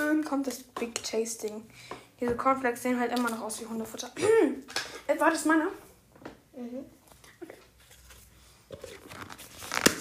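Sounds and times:
speech: 0:00.3 - 0:05.8, 0:06.6 - 0:07.6
plastic lid of a bubble tea cup crinkling: 0:07.8 - 0:09.9.

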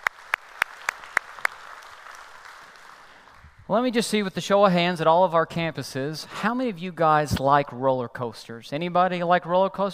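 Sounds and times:
church audience clapping to welcome another campus: 0:00.0 - 0:03.7
speech: 0:03.7 - 0:09.9.

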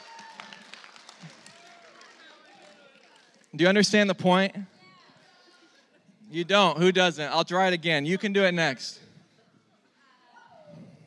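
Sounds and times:
audience applause for volunteers: 0:00.0 - 0:03.8
speech: 0:03.6 - 0:04.7, 0:06.3 - 0:09.0.

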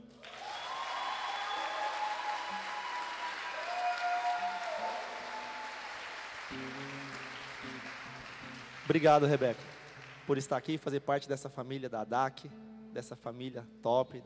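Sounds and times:
crowd applauding: 0:00.0 - 0:10.8
speech: 0:08.9 - 0:09.7, 0:10.3 - 0:14.2.

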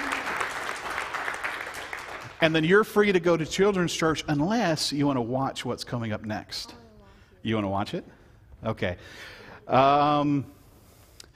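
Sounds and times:
crowd applause: 0:00.0 - 0:02.7
speech: 0:02.4 - 0:06.8, 0:07.4 - 0:10.6.

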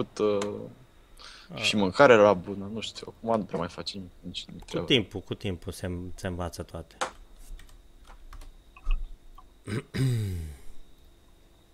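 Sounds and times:
speech: 0:00.0 - 0:07.2, 0:09.6 - 0:10.6
typing on a computer keyboard: 0:07.6 - 0:08.5.

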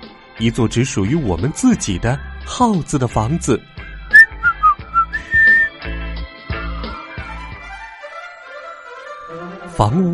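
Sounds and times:
speech: 0:00.4 - 0:03.7, 0:09.8 - 0:10.1
person whistling a tune: 0:04.1 - 0:05.8.

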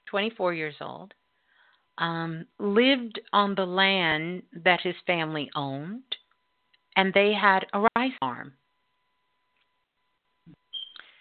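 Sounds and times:
speech: 0:00.1 - 0:01.2, 0:02.0 - 0:06.2, 0:07.0 - 0:08.6
beep: 0:10.6 - 0:11.0.

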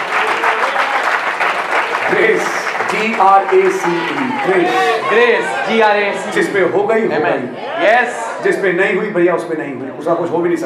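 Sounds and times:
audience clapping: 0:00.0 - 0:05.6
speech: 0:02.2 - 0:10.6.

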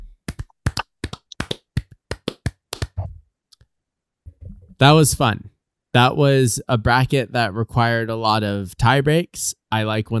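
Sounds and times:
sharp hand claps: 0:00.2 - 0:03.1
speech: 0:04.8 - 0:10.1.

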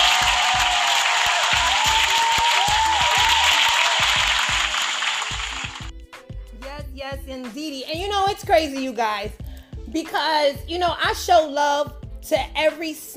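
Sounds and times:
audience applause: 0:00.0 - 0:05.9
speech: 0:07.4 - 0:13.1.

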